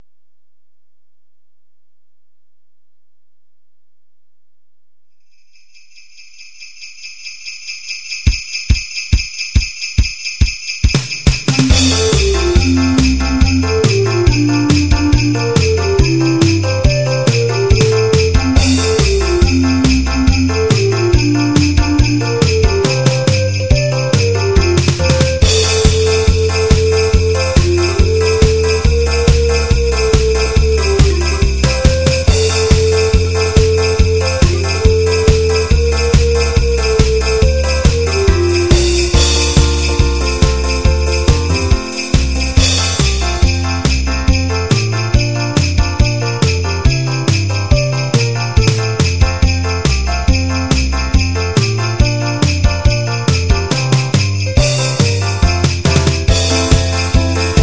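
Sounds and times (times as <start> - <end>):
christmas song: 5.2 - 57.6.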